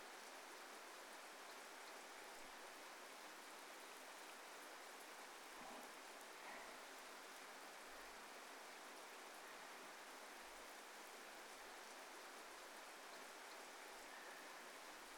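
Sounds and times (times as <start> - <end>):
rain: 0.0 - 15.1.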